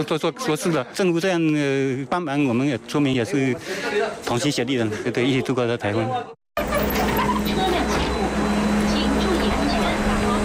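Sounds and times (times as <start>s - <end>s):
speech: 0.0s - 6.4s
bus driving away: 6.6s - 10.4s.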